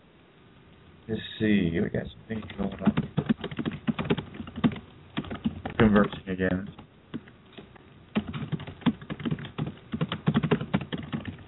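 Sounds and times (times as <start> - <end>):
speech: 1.1 - 3.3, 5.8 - 6.8
typing on a computer keyboard: 2.4 - 6.2, 7.1 - 11.4.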